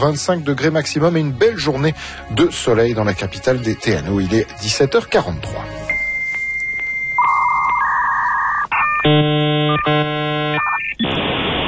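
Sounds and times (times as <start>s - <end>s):
speech: 0.0s - 5.9s, 9.1s - 11.3s
dial-up modem connecting: 7.0s - 11.5s.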